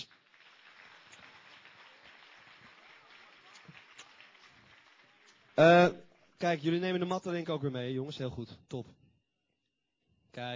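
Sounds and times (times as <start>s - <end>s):
audience applause: 0.0s - 7.2s
speech: 5.6s - 9.0s, 10.4s - 10.5s.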